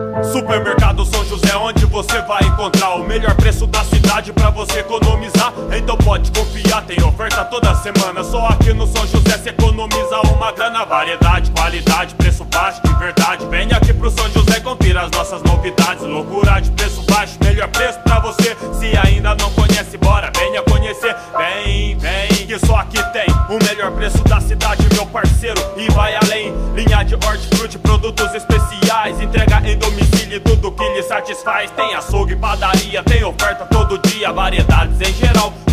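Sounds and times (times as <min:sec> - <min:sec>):
rap music: 0:00.2 - 0:35.7.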